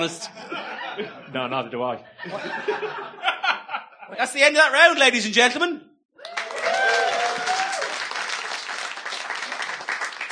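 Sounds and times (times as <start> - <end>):
speech: 0.0 - 3.3, 4.1 - 5.9
laughter: 0.2 - 4.4
spontaneous audience applause: 6.2 - 10.3.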